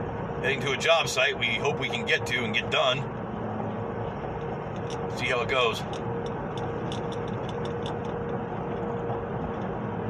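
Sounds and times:
three quarter ton work truck with a trailer driving on road: 0:00.0 - 0:10.0
speech: 0:00.4 - 0:03.2, 0:04.9 - 0:06.1.

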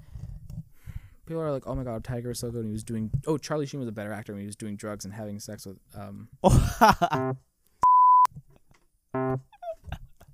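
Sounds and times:
speech: 0:01.3 - 0:07.5
high-pitched censor bleep over speech: 0:07.2 - 0:08.3, 0:09.2 - 0:09.4.

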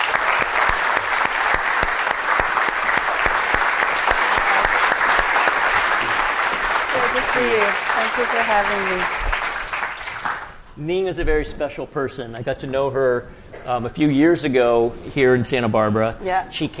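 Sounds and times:
audience applause welcoming a guest speaker to an evening talk: 0:00.0 - 0:10.7
speech: 0:07.4 - 0:09.2, 0:10.8 - 0:16.7.

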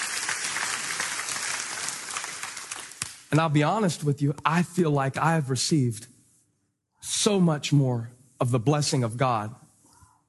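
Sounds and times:
audience clapping: 0:00.0 - 0:03.6
speech: 0:03.3 - 0:06.1, 0:07.0 - 0:09.6.

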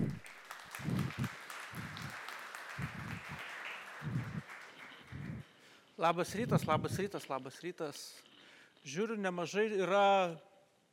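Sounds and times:
audience applause welcoming the head of ESET Lithuania: 0:00.0 - 0:05.6
speech: 0:06.0 - 0:10.9.

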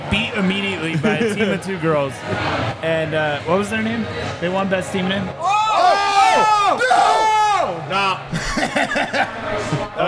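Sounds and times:
speech: 0:00.4 - 0:05.5, 0:07.9 - 0:10.0
laughter: 0:00.8 - 0:01.8, 0:08.3 - 0:10.0
crowd yelling: 0:05.4 - 0:08.2.

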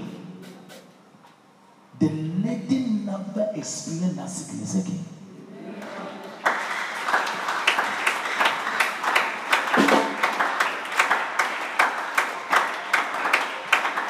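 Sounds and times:
speech: 0:02.0 - 0:05.2
audience clapping: 0:05.8 - 0:14.0.

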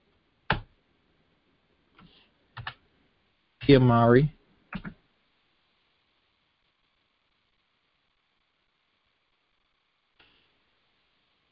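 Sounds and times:
computer keyboard keystrokes while typing a Google search: 0:02.6 - 0:02.8, 0:04.7 - 0:05.0
speech: 0:03.7 - 0:04.8.

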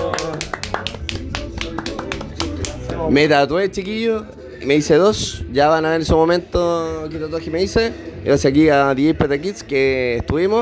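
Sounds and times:
applause: 0:00.0 - 0:03.0
speech: 0:03.1 - 0:10.5.

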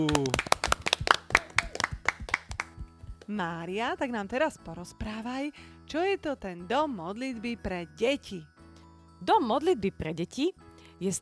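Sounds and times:
applause: 0:00.0 - 0:03.3
speech: 0:03.3 - 0:08.5, 0:09.2 - 0:11.2.

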